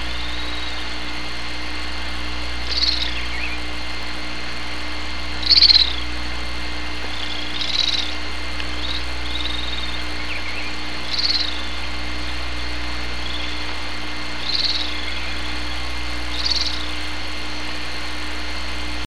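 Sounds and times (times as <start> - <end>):
bird chirping: 0.0 - 1.2, 2.6 - 4.1, 5.4 - 6.2, 7.0 - 17.1
constant low mechanical hum: 0.0 - 19.0.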